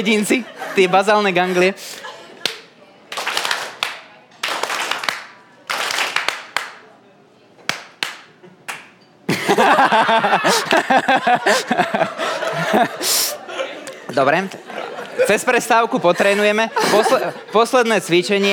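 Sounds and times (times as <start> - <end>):
speech: 0.0 - 2.0, 9.9 - 12.1, 14.1 - 18.5
audience clapping in quick bursts: 2.4 - 6.8
audience laughing: 9.3 - 13.9, 14.7 - 17.6.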